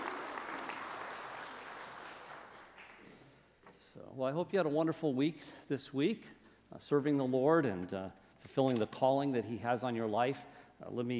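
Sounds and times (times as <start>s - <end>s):
audience applause: 0.0s - 3.1s
speech: 4.1s - 11.1s.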